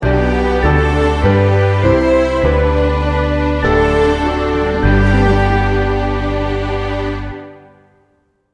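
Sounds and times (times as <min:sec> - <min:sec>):
Christmas carol sting bumper: 0:00.0 - 0:07.7.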